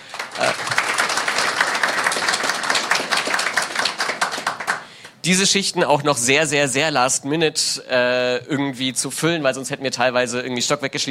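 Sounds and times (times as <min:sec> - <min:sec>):
crowd applauding: 0:00.0 - 0:05.2
speech: 0:05.2 - 0:11.0.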